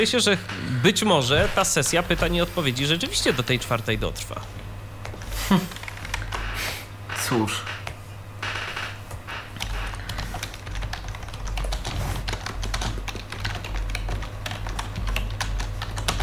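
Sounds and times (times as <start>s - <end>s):
speech: 0.0s - 4.6s, 5.5s - 5.8s, 7.3s - 7.7s
constant low hum: 0.0s - 16.2s
fast clicking of a computer keyboard: 5.8s - 6.4s, 8.7s - 16.2s.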